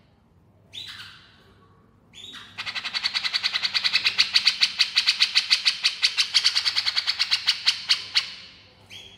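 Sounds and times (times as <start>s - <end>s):
female grey-cheeked bulbul giving harsh rapid chattering notes: 2.2s - 8.5s.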